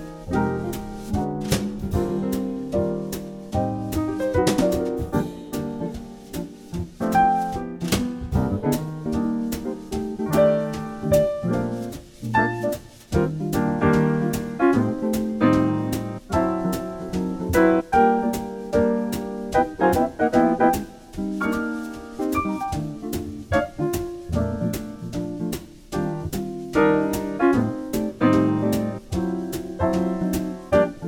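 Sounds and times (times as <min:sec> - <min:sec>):
bass playing a jazz standard: 0:00.0 - 0:31.0.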